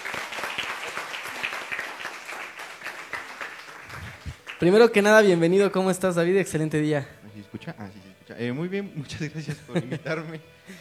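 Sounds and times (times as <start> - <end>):
applause: 0.0 - 5.4
laughter: 2.6 - 4.8, 8.8 - 10.8
speech: 4.6 - 10.8.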